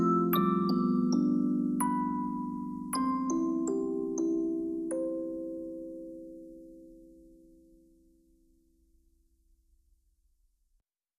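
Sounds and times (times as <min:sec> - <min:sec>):
music box: 0:00.0 - 0:08.0.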